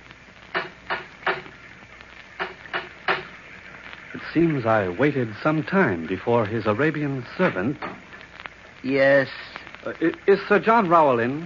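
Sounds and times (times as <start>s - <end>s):
knocking on a wooden door: 2.4s - 3.3s
speech: 4.4s - 8.0s, 8.8s - 11.4s.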